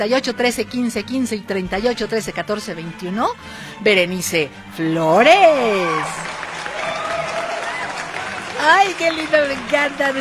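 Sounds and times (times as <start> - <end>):
speech: 0.0 - 6.4, 8.6 - 10.1
applause: 5.7 - 10.1.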